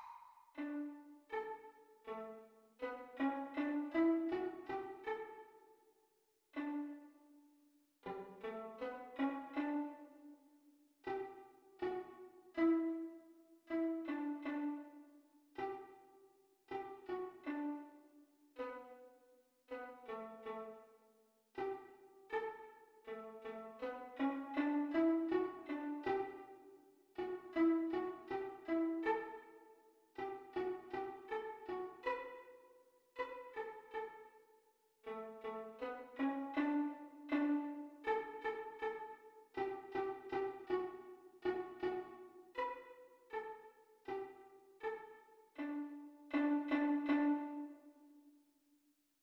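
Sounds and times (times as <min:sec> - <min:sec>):
viola duet at practice speed: 0:00.6 - 0:05.5, 0:06.6 - 0:07.2, 0:08.1 - 0:10.3, 0:11.1 - 0:16.0, 0:16.7 - 0:18.0, 0:19.7 - 0:20.8, 0:21.6 - 0:29.6, 0:30.2 - 0:32.5, 0:35.1 - 0:48.1.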